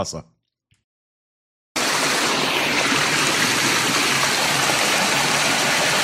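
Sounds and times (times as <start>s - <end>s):
waterfall: 1.8s - 6.0s.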